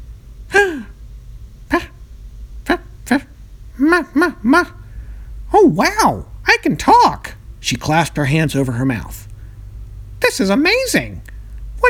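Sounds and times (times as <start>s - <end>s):
monkey calls: 0.5s - 0.9s, 1.7s - 2.0s, 2.7s - 4.9s, 5.5s - 9.2s
speech: 3.1s - 4.8s, 5.6s - 9.3s, 10.2s - 11.8s.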